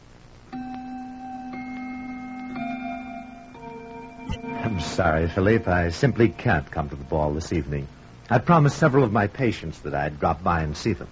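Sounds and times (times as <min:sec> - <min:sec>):
grandfather clock chiming in the living room: 0:00.5 - 0:08.2
speech: 0:04.4 - 0:11.1.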